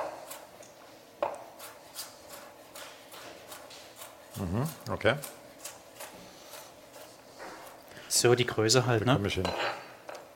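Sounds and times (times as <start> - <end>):
knife dicing food on a cutting board: 0.0 - 0.5, 1.2 - 7.8
speech: 4.4 - 5.4, 8.2 - 9.8.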